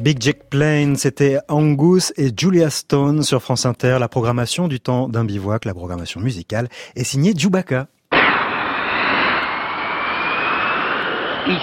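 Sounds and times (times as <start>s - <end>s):
speech: 0.0s - 8.0s, 11.4s - 11.6s
Mirage IIIC jet aircraft in flight at Istres: 8.1s - 11.6s.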